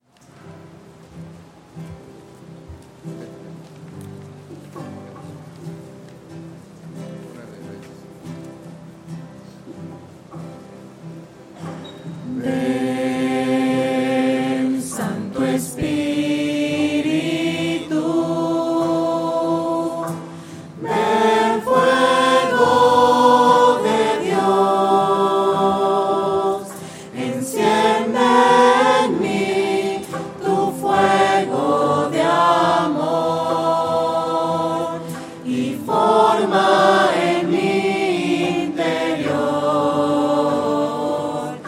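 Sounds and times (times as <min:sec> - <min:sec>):
voices: 0:12.4 - 0:41.6.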